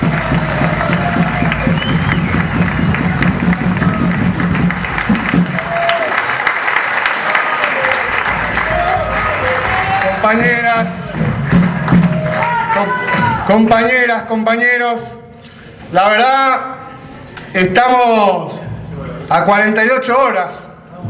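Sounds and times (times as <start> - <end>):
loud applause from a crowd: 0.0 - 13.5
speech: 10.2 - 11.0, 13.5 - 15.2, 15.9 - 16.7, 17.5 - 18.6, 19.3 - 20.6.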